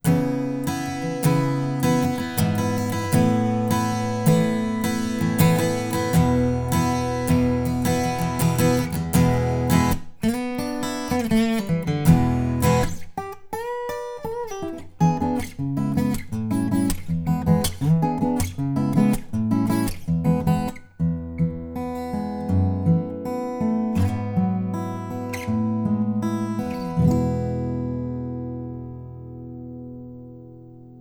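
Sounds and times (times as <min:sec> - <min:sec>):
acoustic guitar: 0:00.0 - 0:30.9.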